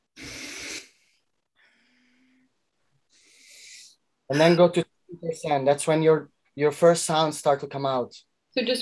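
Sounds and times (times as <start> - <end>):
heavy hyperventilating breathing in a rage-release exercise: 0.0 - 1.0
speech: 4.3 - 8.8.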